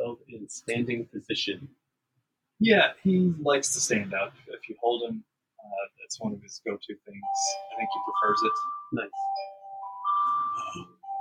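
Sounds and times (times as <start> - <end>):
speech: 0.4 - 1.8, 2.6 - 9.5, 10.7 - 11.0
phone emergency alert tone: 7.2 - 11.1.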